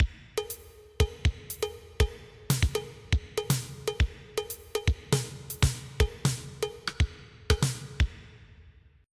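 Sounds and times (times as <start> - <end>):
drum: 0.0 - 8.5.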